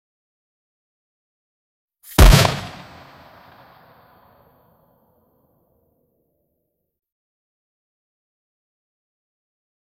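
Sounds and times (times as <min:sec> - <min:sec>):
fireball shooting: 0:02.1 - 0:03.8.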